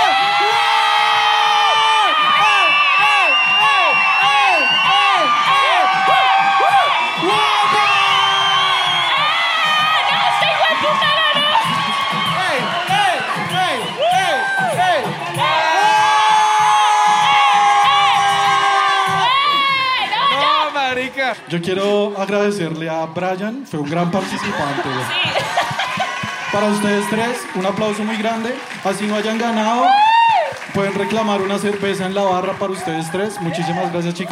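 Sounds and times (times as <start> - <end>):
crowd cheering and shouting: 0.0 - 34.3
speech: 21.5 - 25.6, 26.5 - 30.0, 30.8 - 34.3
laughter: 23.8 - 26.8.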